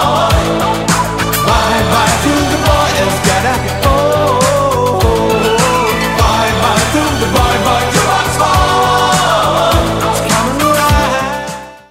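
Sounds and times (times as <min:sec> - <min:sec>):
80s Redrum drum machine beat: 0:00.0 - 0:11.4.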